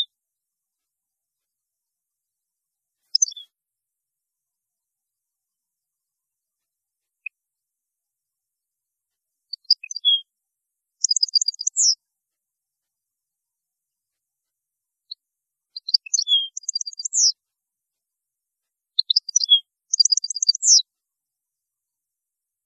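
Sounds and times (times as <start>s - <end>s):
European goldfinch singing: 3.1s - 3.5s, 9.5s - 10.2s, 11.0s - 12.0s, 15.8s - 17.4s, 19.0s - 20.8s.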